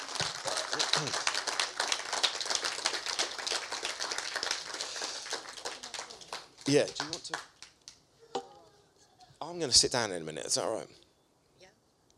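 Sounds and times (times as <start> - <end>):
round of applause from a crowd: 0.0 - 7.5
speech: 1.0 - 1.3, 6.7 - 7.5, 9.5 - 11.0.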